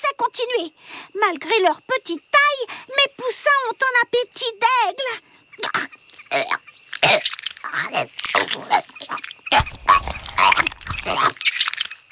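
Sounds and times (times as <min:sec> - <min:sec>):
speech: 0:00.0 - 0:11.5
barn owl regurgitating food: 0:06.3 - 0:11.5.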